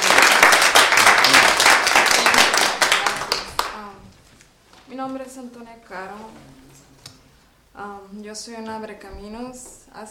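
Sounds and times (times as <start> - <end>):
audience applause: 0.0 - 3.8
speech: 5.0 - 6.9, 7.8 - 10.0.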